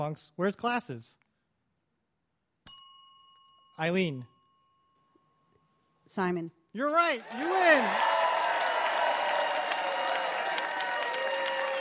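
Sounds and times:
speech: 0.0 - 1.2, 3.8 - 4.3, 6.1 - 8.1
audience applause for quiz winner: 7.1 - 11.8.

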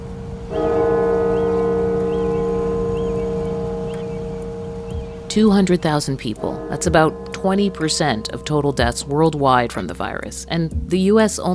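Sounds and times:
cathedral bell tolling: 0.0 - 10.9
speech: 5.3 - 11.5.

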